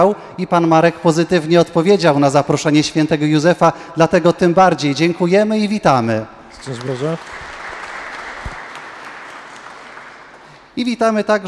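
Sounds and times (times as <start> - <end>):
speech: 0.0 - 7.4, 10.8 - 11.4
audience applause: 6.6 - 10.8.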